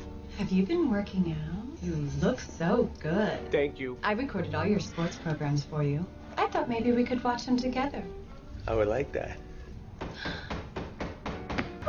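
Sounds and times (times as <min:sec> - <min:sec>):
speech: 0:00.4 - 0:09.5
knocking at a door: 0:10.0 - 0:11.8.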